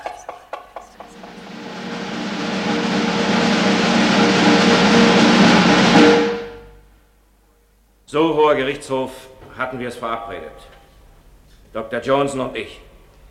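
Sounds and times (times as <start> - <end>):
rapid roll of knocking: 0.5 - 6.6
speech: 8.1 - 10.8, 11.7 - 12.9.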